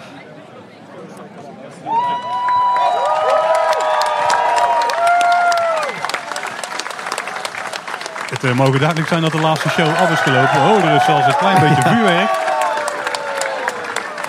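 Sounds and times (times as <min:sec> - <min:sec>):
applause: 0:01.9 - 0:14.2
speech: 0:08.4 - 0:12.5
laughter: 0:09.4 - 0:12.5.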